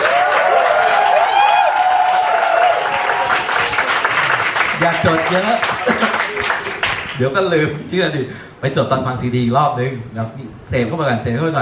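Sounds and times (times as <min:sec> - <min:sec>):
voices cheering: 0:00.0 - 0:06.8
crowd applauding: 0:00.0 - 0:07.3
speech: 0:04.9 - 0:11.6.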